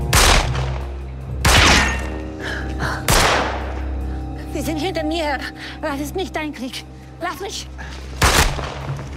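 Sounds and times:
gunshot: 0.1s - 0.7s, 1.4s - 2.0s, 3.1s - 3.7s, 8.2s - 8.9s
speech: 4.7s - 8.8s.

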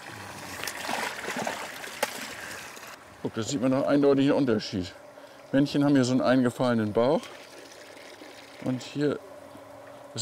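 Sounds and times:
fresh lake water poured into tubs: 0.0s - 3.0s, 7.1s - 8.8s
speech: 3.2s - 7.4s, 8.6s - 9.3s.

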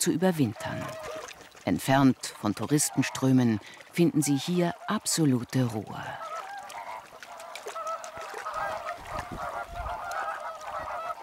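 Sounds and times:
speech: 0.0s - 6.3s
flock of flamingos calling in a lagoon: 0.4s - 1.4s, 2.6s - 11.2s.

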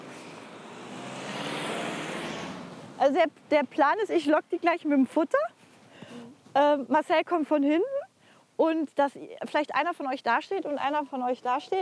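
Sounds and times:
car approaching on village road: 0.0s - 3.6s
speech: 3.0s - 5.6s, 6.6s - 8.0s, 8.6s - 11.8s.

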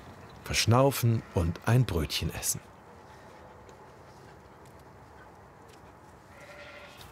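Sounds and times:
speech: 0.5s - 2.7s
sheep bleating: 6.3s - 7.1s.

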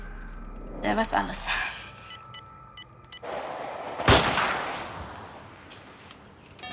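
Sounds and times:
speech: 0.8s - 1.6s
rifle shot from a poorly zeroed rifle on a wild boar hunt: 3.3s - 5.5s.

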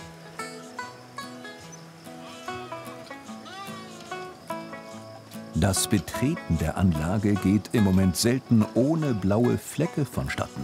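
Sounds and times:
flock of sheep bleating in enclosure: 2.1s - 4.4s
speech: 5.6s - 10.6s.

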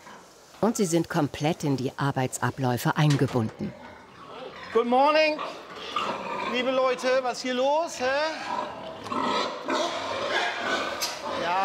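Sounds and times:
speech: 0.6s - 3.8s, 4.7s - 9.3s
young sows squealing and grunting at feeding time in feeding stalls: 3.7s - 11.6s.

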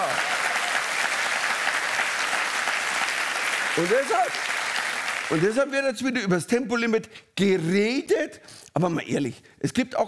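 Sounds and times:
audience clapping: 0.0s - 5.8s
speech: 3.8s - 4.6s, 5.3s - 10.0s.

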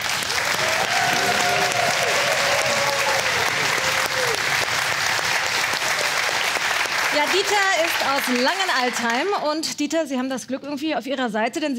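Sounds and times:
audience applause: 0.0s - 9.5s
faint voices and cheers: 0.2s - 9.0s
speech: 7.2s - 11.7s.

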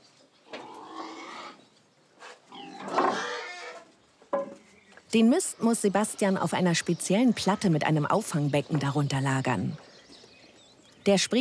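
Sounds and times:
pigs grunting and squealing in farm stall: 0.5s - 1.6s, 2.5s - 3.9s
speech: 5.1s - 9.9s, 11.1s - 11.4s.

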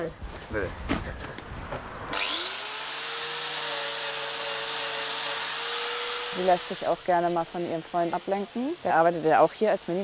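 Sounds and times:
speech: 0.0s - 1.2s, 6.4s - 10.0s
angle grinder running: 2.2s - 9.4s.

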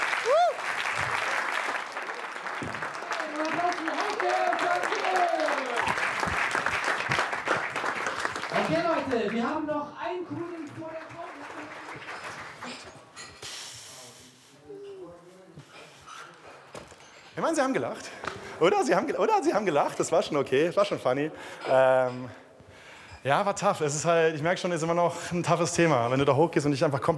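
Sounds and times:
audience applause: 0.0s - 13.2s
speech: 9.2s - 11.0s, 17.4s - 22.4s, 23.2s - 27.1s.

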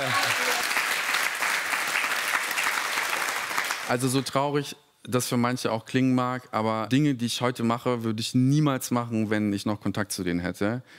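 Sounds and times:
audience applause: 0.0s - 4.2s
speech: 3.9s - 10.9s.

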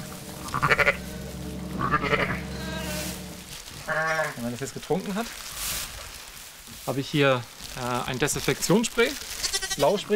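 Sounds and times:
stable hum: 0.0s - 4.6s
lamb bleating in stable: 0.4s - 1.0s, 1.8s - 3.1s, 3.8s - 4.4s, 9.3s - 10.1s
speech: 0.5s - 0.9s, 4.5s - 5.6s, 6.9s - 10.1s.

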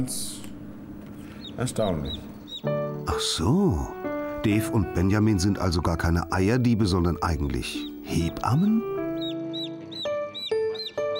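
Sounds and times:
speech: 0.0s - 0.4s, 1.6s - 8.9s
chick peeping loudly: 1.1s - 2.9s, 7.6s - 11.1s.

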